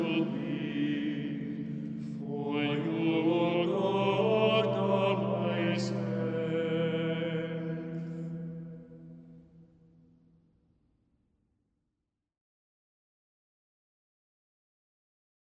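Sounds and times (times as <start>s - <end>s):
slow music: 0.0s - 9.8s.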